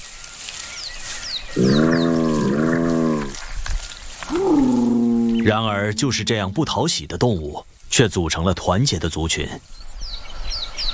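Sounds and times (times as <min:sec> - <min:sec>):
speech: 0:01.5 - 0:02.1, 0:05.5 - 0:09.8
spotted hyena moaning and whooping calls: 0:01.6 - 0:03.4, 0:04.3 - 0:07.0.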